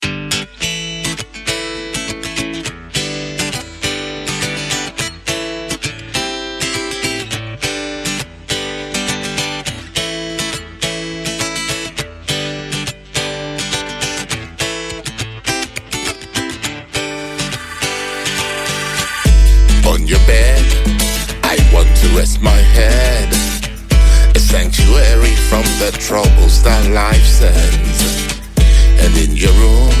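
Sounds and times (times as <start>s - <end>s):
musical riff: 17.0s - 29.9s.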